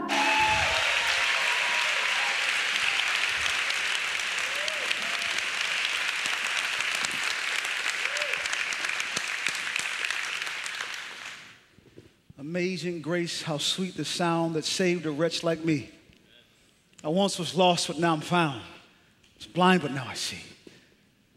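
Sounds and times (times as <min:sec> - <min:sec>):
congregation applause welcoming a new North Durham campus pastor at a church service: 0:00.0 - 0:11.7
speech: 0:12.6 - 0:16.0, 0:17.1 - 0:18.7, 0:19.4 - 0:20.5.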